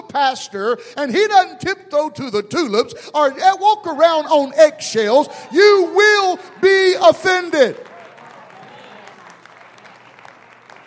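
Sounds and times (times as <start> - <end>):
speech: 0.1 - 7.9
audience clapping: 6.0 - 10.8.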